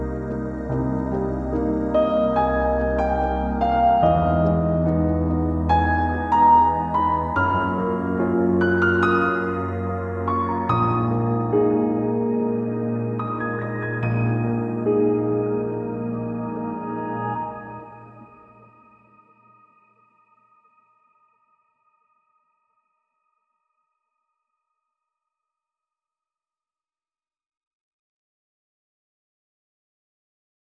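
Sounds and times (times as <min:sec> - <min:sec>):
sad music: 0:00.0 - 0:19.8.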